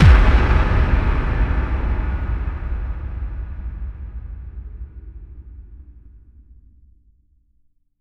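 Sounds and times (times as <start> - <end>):
effect kick drum hits: 0.0 - 4.5.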